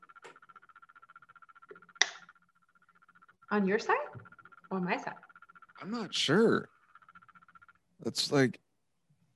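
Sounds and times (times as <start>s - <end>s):
rattle: 0.0s - 8.5s
speech: 3.5s - 6.7s, 8.0s - 8.6s.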